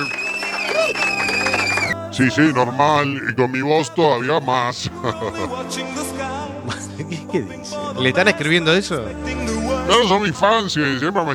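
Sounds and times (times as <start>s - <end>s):
loud audience applause: 0.0s - 2.0s
laughter: 0.0s - 5.9s, 6.6s - 7.6s
speech: 2.2s - 11.3s.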